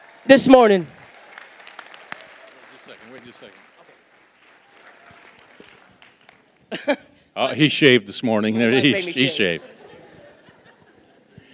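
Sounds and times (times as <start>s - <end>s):
audience applauding: 0.0s - 6.7s
speech: 0.2s - 1.0s, 3.3s - 3.7s, 6.8s - 9.7s
laughter: 8.7s - 11.5s.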